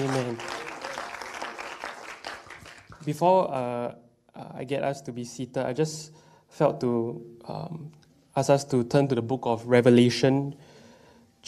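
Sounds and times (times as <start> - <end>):
crowd clapping: 0.0 - 3.2
speech: 3.1 - 10.7.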